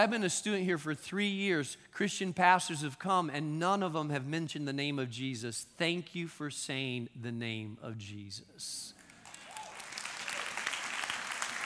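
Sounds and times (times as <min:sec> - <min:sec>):
speech: 0:00.0 - 0:08.9
audience clapping: 0:09.0 - 0:11.6.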